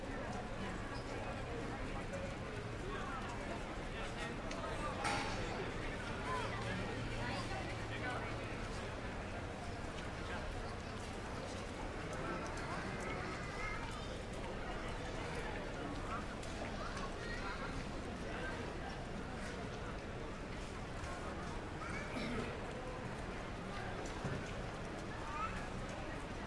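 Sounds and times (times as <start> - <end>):
pedestrians walla in a Madrid Sol side street: 0.0 - 26.4
rain in a side street in Madrid Sol: 5.6 - 26.4.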